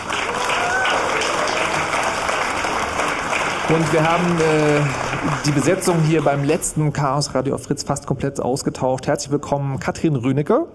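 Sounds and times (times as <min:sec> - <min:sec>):
live audience applause: 0:00.0 - 0:07.0
speech: 0:03.7 - 0:10.7.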